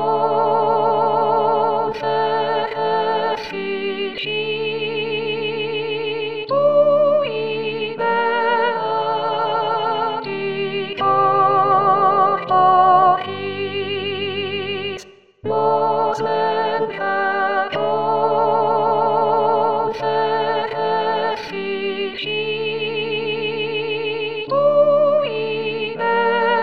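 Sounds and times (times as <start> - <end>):
soprano singing: 0.0 - 26.6.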